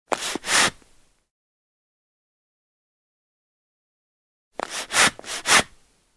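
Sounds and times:
small hand forge bellows pumping air: 0.1 - 0.8, 4.6 - 5.7.

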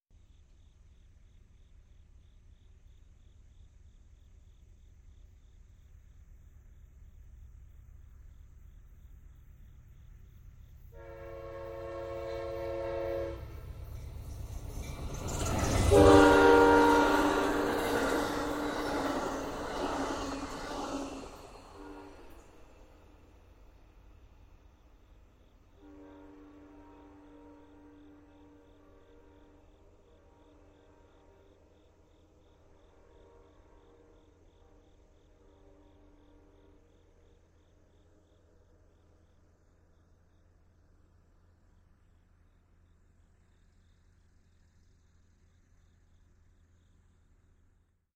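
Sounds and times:
freight train horn: 10.9 - 13.8, 15.3 - 22.8, 25.8 - 31.6, 32.7 - 36.8.

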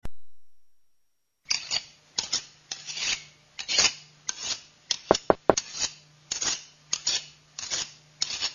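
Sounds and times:
knife sound effects: 1.5 - 8.5.

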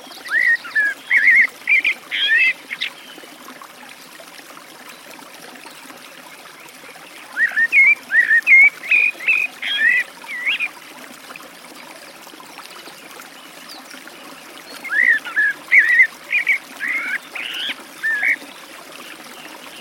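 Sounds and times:
Eurasian blackbird delivering warbled whistles beside a forest stream: 0.0 - 3.3, 7.2 - 10.7, 12.9 - 18.6.

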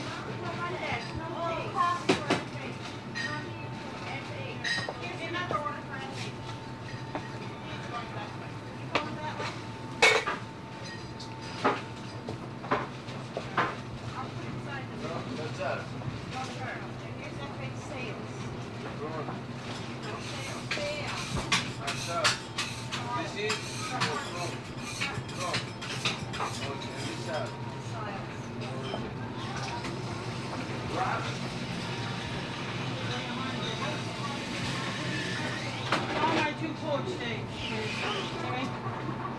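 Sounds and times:
small sparsely populated restaurant ambience: 0.0 - 39.3
dishes clinking in a small restaurant: 3.1 - 3.4, 4.6 - 5.1, 6.8 - 7.5, 10.0 - 11.8, 19.7 - 27.6, 28.4 - 29.8.

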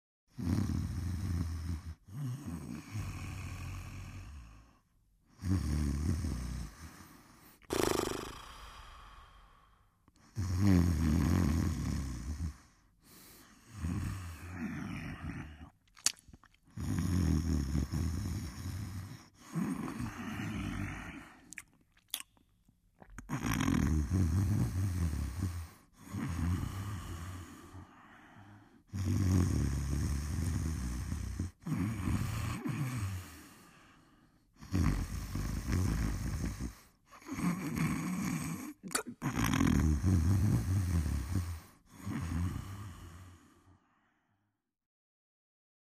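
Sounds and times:
person snoring: 0.3 - 15.8, 16.7 - 21.6, 23.1 - 43.8
person sniffling: 7.7 - 9.2, 38.7 - 39.4
person chewing loudly: 15.8 - 16.7, 21.4 - 23.4.

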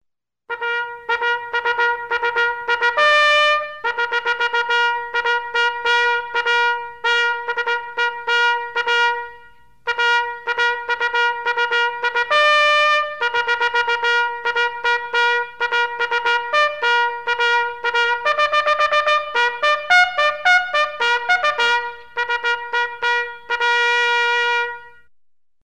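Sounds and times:
military bugle salute: 0.5 - 25.1.

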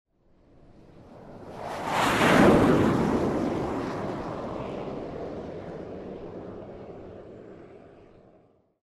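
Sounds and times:
F-18 jet fighter flying past fast: 0.3 - 8.6.

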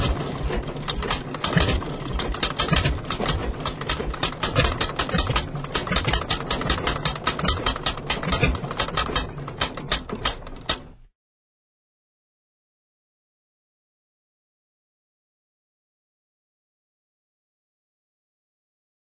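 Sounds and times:
old tractor engine: 0.0 - 11.0.

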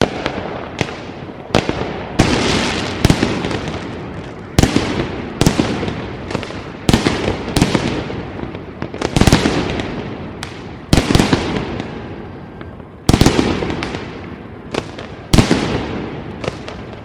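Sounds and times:
distant New Year fireworks: 0.0 - 17.0.

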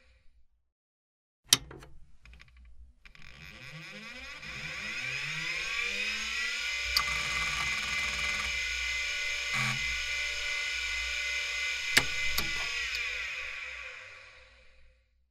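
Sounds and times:
computer fan humming: 3.2 - 14.4
computer switching on and off: 3.2 - 14.7.

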